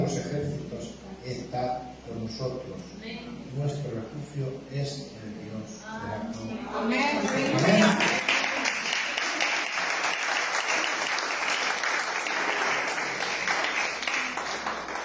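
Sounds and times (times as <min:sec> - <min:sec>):
speech: 0:01.2 - 0:08.2
audience applause: 0:07.2 - 0:15.0.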